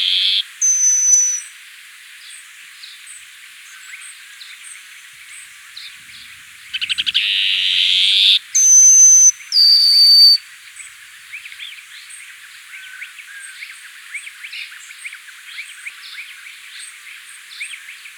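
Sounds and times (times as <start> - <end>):
Plain-Colored Seedeater: 0.0 - 1.4, 6.7 - 10.4.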